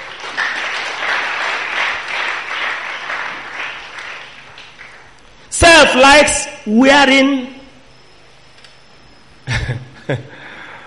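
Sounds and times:
church audience clapping: 0.0s - 5.3s
speech: 5.9s - 7.6s, 10.1s - 10.3s.

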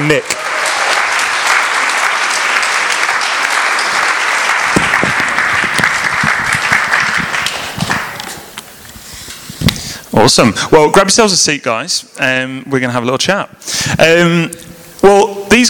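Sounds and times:
audience round of applause: 0.0s - 8.6s
speech: 0.1s - 0.3s, 10.2s - 15.6s.

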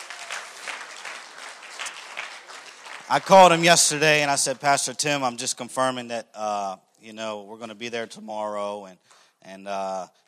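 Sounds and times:
audience hand clapping: 0.0s - 3.7s
speech: 3.1s - 10.2s.

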